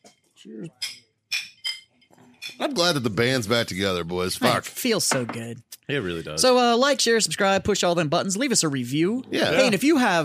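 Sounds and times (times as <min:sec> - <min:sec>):
speech: 0:00.4 - 0:01.0, 0:02.6 - 0:10.2
glasses clinking in a toast: 0:00.7 - 0:02.6.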